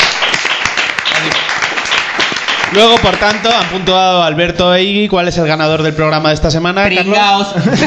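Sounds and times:
applause: 0.0 - 4.0
speech: 2.7 - 7.8
laughter: 7.6 - 7.8.

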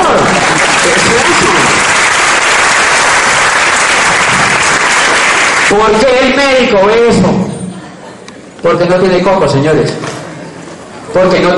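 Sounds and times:
audience applause: 0.0 - 5.8
speech: 5.7 - 7.6, 8.6 - 10.1, 11.1 - 11.5.

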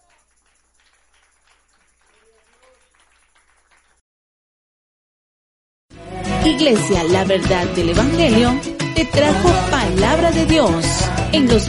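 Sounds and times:
audience applauding: 0.0 - 4.0
speech: 6.4 - 11.6.

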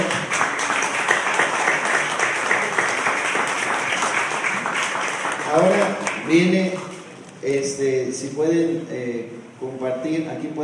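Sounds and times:
audience applause: 0.0 - 6.5
speech: 5.6 - 6.8, 7.4 - 10.6.

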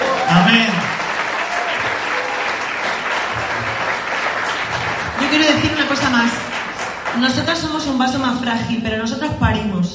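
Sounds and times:
audience applause: 0.0 - 7.7
speech: 0.5 - 0.7, 7.2 - 9.9.

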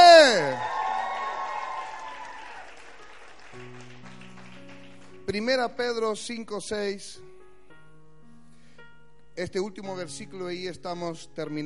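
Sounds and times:
audience shouting for joy: 0.0 - 2.7
audience applauding: 0.2 - 5.3
speech: 5.3 - 7.3, 9.4 - 11.6.

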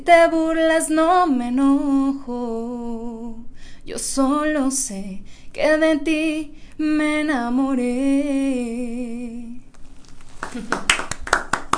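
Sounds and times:
speech: 0.0 - 9.6, 10.5 - 11.1
audience applause: 10.3 - 11.7
laughter: 10.5 - 11.0.

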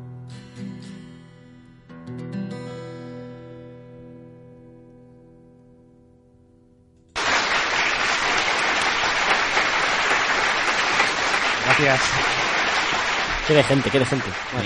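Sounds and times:
crowd of people applauding: 7.2 - 14.6
speech: 11.8 - 12.4, 13.5 - 14.6.

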